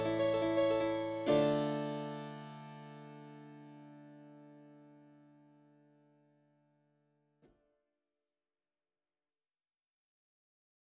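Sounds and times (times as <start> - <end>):
harpsichord concerto: 0.0 - 3.4.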